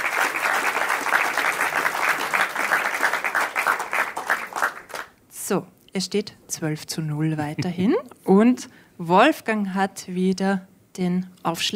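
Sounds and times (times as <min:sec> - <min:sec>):
audience applause: 0:00.0 - 0:05.1
speech: 0:05.5 - 0:11.7.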